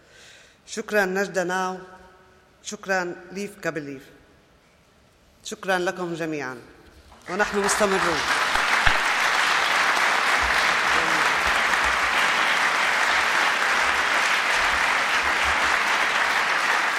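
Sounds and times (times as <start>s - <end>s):
speech: 0.7s - 2.0s, 2.6s - 4.2s, 5.4s - 8.4s
audience applause: 7.3s - 16.9s.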